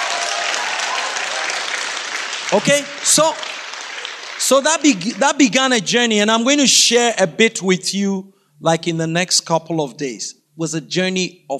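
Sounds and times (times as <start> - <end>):
audience applause: 0.0 - 5.6
speech: 2.5 - 3.6, 4.5 - 11.5.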